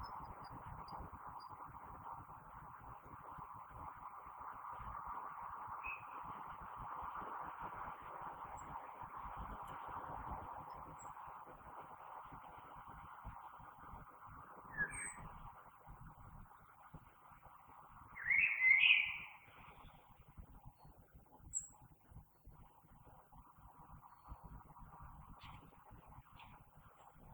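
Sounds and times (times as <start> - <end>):
common blackbird fluty song: 0.0 - 2.0, 5.8 - 6.5, 14.5 - 15.5, 18.1 - 20.1, 20.7 - 21.8
steady low background noise: 0.0 - 27.3.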